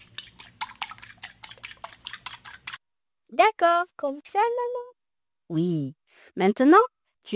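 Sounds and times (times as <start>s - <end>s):
whisk stirring milk into a mixture in a bowl: 0.0s - 2.8s
speech: 3.3s - 4.9s, 5.5s - 7.3s.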